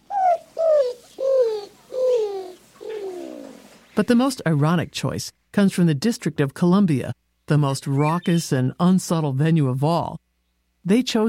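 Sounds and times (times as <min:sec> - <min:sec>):
greater roadrunner calling with dovelike coos: 0:00.0 - 0:03.8
speech: 0:04.0 - 0:10.2, 0:10.8 - 0:11.2.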